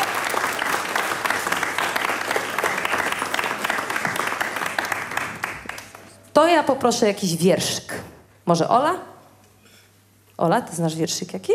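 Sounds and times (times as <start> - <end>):
group clapping: 0.0 - 6.3
speech: 6.6 - 9.1, 10.4 - 11.5.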